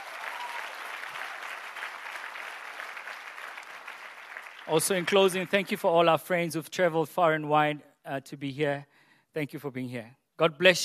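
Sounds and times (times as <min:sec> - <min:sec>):
audience applauding: 0:00.0 - 0:06.0
speech: 0:04.7 - 0:10.8.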